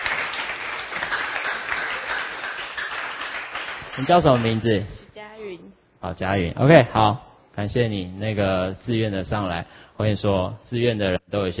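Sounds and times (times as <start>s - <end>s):
audience applause: 0.0s - 4.6s
speech: 4.0s - 5.0s, 6.0s - 11.5s.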